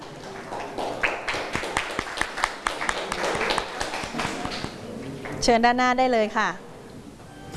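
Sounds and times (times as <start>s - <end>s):
group of people clapping: 0.0s - 5.4s
speech: 5.4s - 6.6s.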